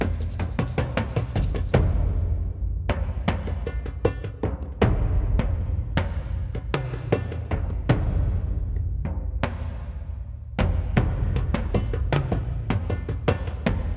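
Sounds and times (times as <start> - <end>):
percussion loop: 0.0 - 13.9.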